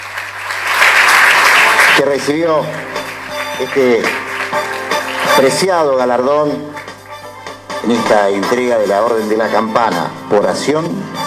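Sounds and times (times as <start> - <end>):
crowd clapping: 0.0 - 8.0
speech: 2.0 - 3.0, 3.6 - 4.2, 5.4 - 6.8, 7.8 - 11.2.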